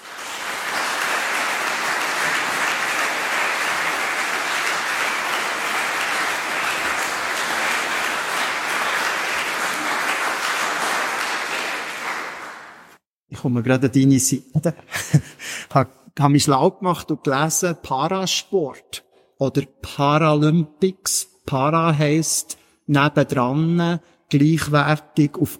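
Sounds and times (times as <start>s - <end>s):
audience applause: 0.0s - 13.0s
speech: 13.4s - 25.5s.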